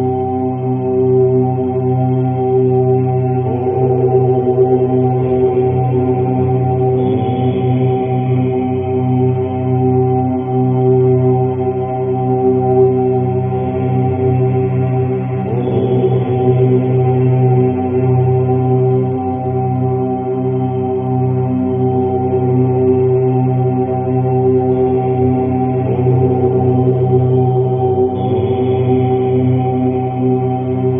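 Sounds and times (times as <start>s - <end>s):
om chant: 0.0s - 30.9s.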